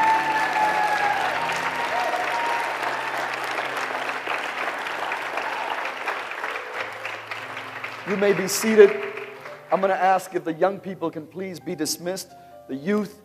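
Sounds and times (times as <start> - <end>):
faint voices and cheers: 0.0 - 3.7, 5.0 - 6.7
crowd applause: 0.0 - 10.3
speech: 8.1 - 9.1, 9.7 - 13.2.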